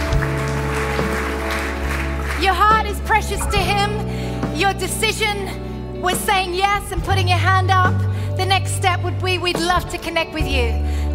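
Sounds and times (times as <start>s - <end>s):
audience applause: 0.0s - 3.4s
speech: 3.3s - 11.1s.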